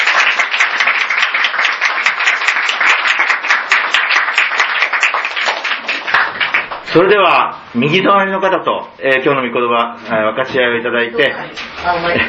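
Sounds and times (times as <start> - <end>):
audience applause: 0.0 - 6.9
speech: 6.9 - 12.2.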